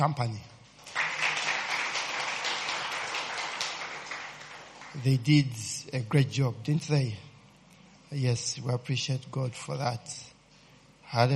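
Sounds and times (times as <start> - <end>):
speech: 0.0 - 0.5, 5.0 - 7.3, 8.1 - 10.3, 11.1 - 11.3
audience clapping: 0.8 - 5.3.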